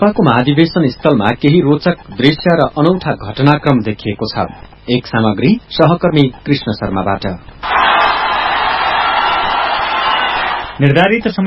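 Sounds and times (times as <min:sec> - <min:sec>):
speech: 0:00.0 - 0:07.9, 0:10.8 - 0:11.4
crowd hooting as politicians arrive at a party convention: 0:07.6 - 0:10.8.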